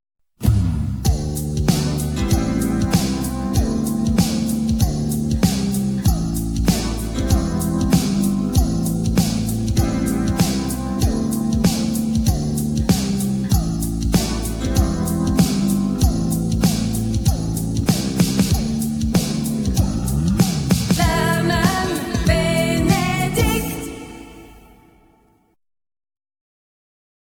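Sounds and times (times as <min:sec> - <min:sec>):
jingle: 0:01.0 - 0:24.9.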